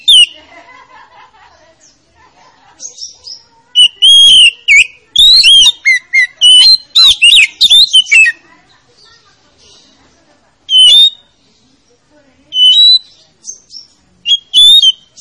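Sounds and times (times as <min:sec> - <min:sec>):
Oriental magpie-robin song: 0:00.0 - 0:00.4, 0:02.8 - 0:08.4, 0:10.7 - 0:11.3, 0:12.5 - 0:15.2
laughter: 0:00.0 - 0:03.0.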